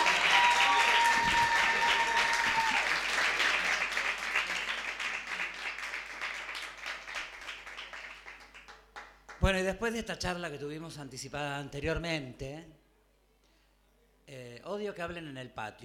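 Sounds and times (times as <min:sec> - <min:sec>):
audience applause: 0:00.0 - 0:08.8
speech: 0:09.5 - 0:12.8, 0:14.7 - 0:15.8.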